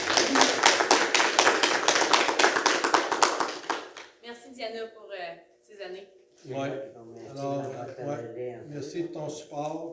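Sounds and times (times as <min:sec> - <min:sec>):
audience applauding: 0:00.0 - 0:04.1
speech: 0:06.0 - 0:09.9.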